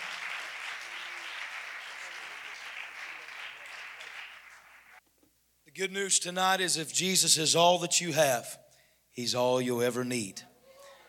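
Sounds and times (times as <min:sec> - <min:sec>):
applause from the gathering at a church camp: 0:00.0 - 0:05.0
speech: 0:05.8 - 0:08.6, 0:09.2 - 0:10.5.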